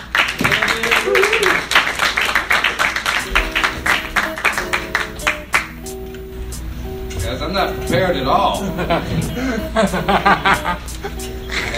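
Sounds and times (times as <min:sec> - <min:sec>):
crowd applauding: 0:00.0 - 0:05.8
laughter: 0:00.4 - 0:02.3, 0:08.2 - 0:11.7
speech: 0:07.6 - 0:11.3.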